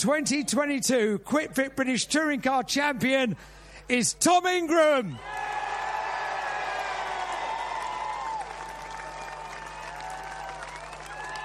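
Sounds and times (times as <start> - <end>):
speech: 0.0 - 5.4
crowd applause at Brands Hatch: 5.2 - 11.4.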